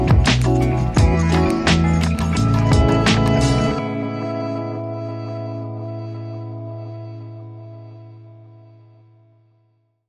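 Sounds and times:
barrio groove music: 0:00.0 - 0:07.7.

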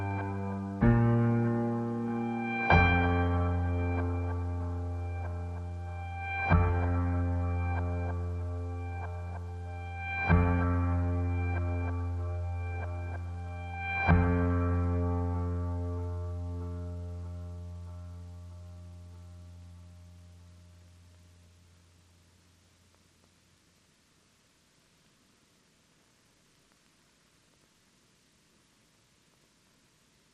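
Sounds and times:
piano: 0:00.0 - 0:21.5.

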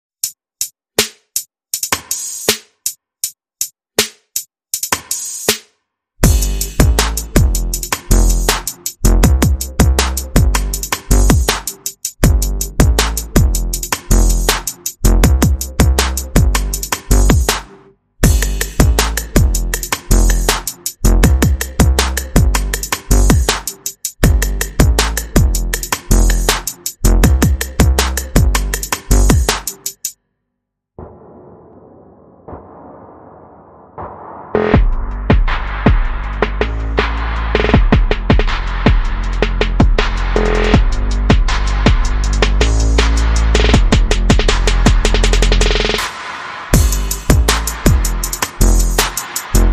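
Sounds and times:
percussion: 0:00.2 - 0:30.2, 0:34.0 - 0:49.7
bass: 0:06.2 - 0:29.9, 0:34.6 - 0:49.7
sound effects: 0:31.0 - 0:34.8.

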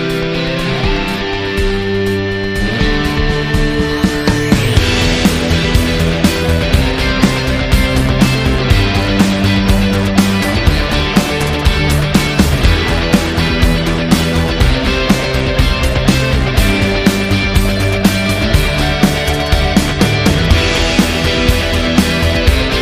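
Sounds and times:
synth arpeggiator: 0:00.0 - 0:22.8.

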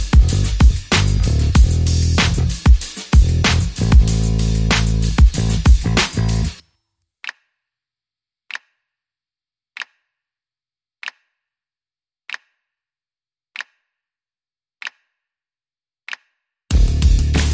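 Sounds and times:
bass: 0:00.0 - 0:06.6, 0:16.7 - 0:17.5
drums: 0:00.0 - 0:06.6, 0:16.7 - 0:17.5.

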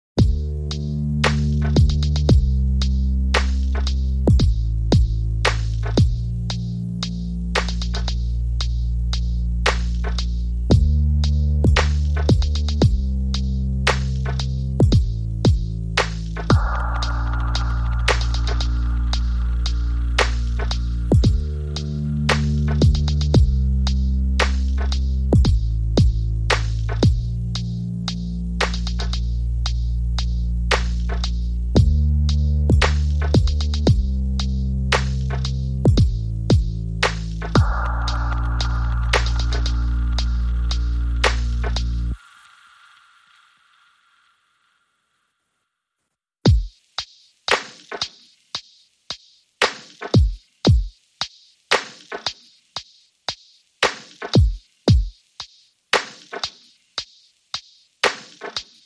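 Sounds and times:
bass: 0:00.0 - 0:42.2
drums: 0:00.2 - 0:42.4, 0:46.4 - 0:58.8.

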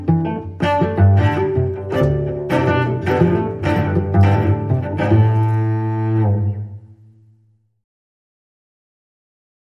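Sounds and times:
solo cello piece: 0:00.0 - 0:07.4.

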